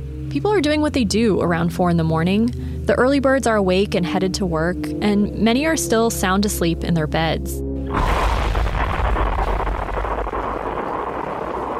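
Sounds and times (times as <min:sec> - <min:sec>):
speech: 0:00.4 - 0:08.4
massive industrial warehouse explosion: 0:07.9 - 0:11.7.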